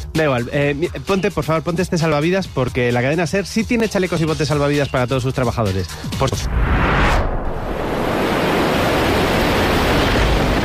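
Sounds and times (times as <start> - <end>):
speech: 0.2 - 7.0
heavy rain on a ship: 7.6 - 10.6
rough sea around a ship: 7.6 - 10.6.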